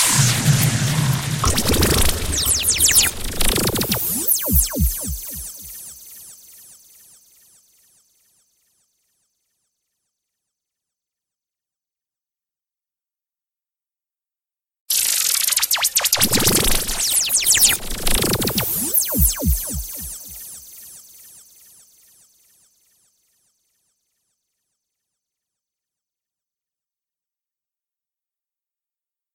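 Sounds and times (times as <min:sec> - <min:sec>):
sound effects: 0:00.0 - 0:05.8, 0:15.8 - 0:20.6.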